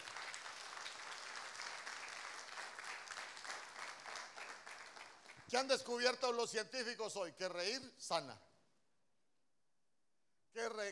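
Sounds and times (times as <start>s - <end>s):
audience applause: 0.0s - 5.4s
speech: 5.5s - 8.5s, 10.6s - 10.9s.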